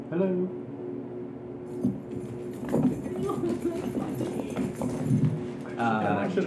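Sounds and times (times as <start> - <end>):
speech: 0.2 - 0.7, 5.8 - 6.4
keys jangling on a key ring: 1.7 - 5.5.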